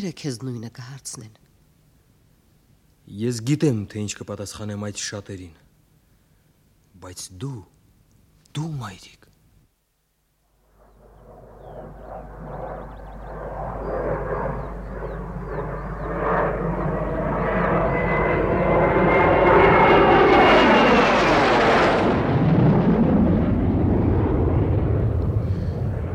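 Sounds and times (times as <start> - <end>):
speech: 0.0 - 1.5, 3.1 - 5.6, 7.0 - 7.8, 8.5 - 9.3
whining tone sweeping downward: 10.6 - 25.2
airplane engine roar at an airport: 10.6 - 26.1.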